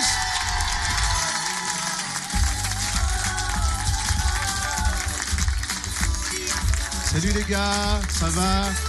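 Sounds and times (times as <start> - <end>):
crowd cheering with excited shouts and whoops: 0.0 - 7.0
crowd applauding: 0.0 - 8.8
speech: 7.2 - 8.8.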